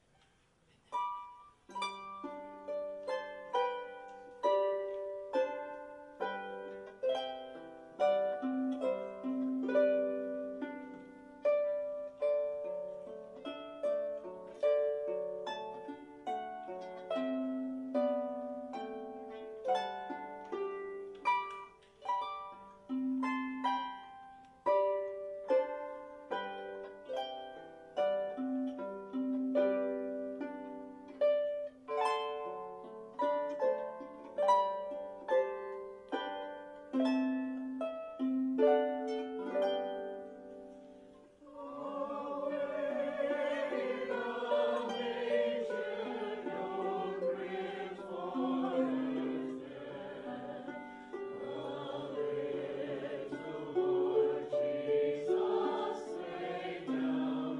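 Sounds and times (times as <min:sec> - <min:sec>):
harp: 0:00.0 - 0:57.5.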